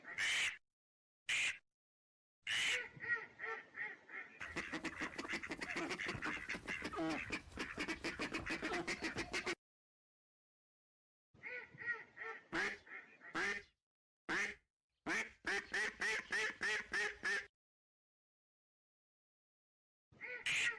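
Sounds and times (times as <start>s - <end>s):
male and female migratory ducks: 0.0s - 0.6s, 2.5s - 9.6s, 11.4s - 13.7s, 14.3s - 17.5s, 20.2s - 20.7s.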